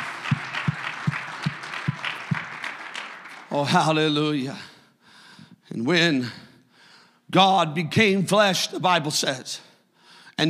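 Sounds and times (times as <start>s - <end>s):
audience clapping hands: 0.0s - 4.4s
speech: 3.6s - 4.7s, 5.8s - 6.4s, 7.3s - 9.7s.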